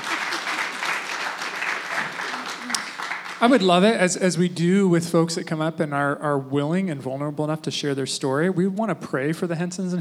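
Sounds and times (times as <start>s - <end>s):
crowd applauding: 0.0s - 4.0s
speech: 3.4s - 9.9s.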